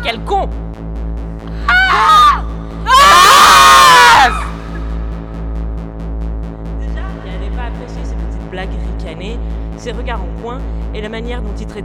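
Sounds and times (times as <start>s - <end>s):
speech: 0.0s - 0.9s, 9.8s - 11.8s
woman screaming in rage: 1.6s - 4.6s.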